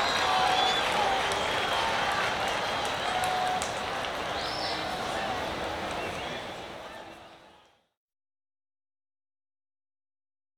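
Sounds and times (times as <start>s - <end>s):
crowd at a baseball stadium exterior ambience: 0.0s - 8.0s.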